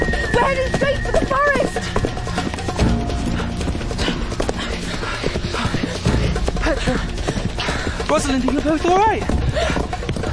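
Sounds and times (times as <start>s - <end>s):
horse hooves clip-clopping: 0.0s - 10.3s
speech: 8.1s - 9.8s.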